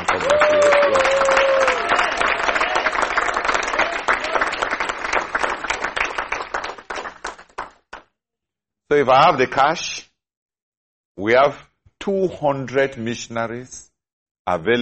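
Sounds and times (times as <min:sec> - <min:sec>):
audience clapping: 0:00.0 - 0:08.1
speech: 0:09.0 - 0:10.1, 0:11.2 - 0:14.8.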